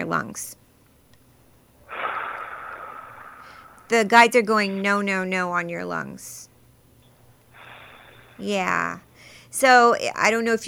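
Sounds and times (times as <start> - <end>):
speech: 0.0 - 0.6, 3.9 - 6.5, 8.4 - 10.6
deep breaths: 1.8 - 3.9, 7.5 - 8.5, 9.1 - 9.6.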